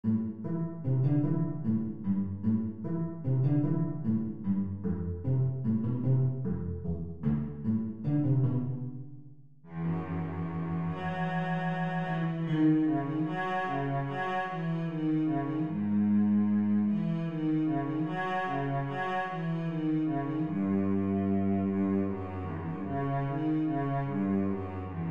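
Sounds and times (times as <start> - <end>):
cello playing assez vif: 0.1 - 8.9, 9.7 - 25.0.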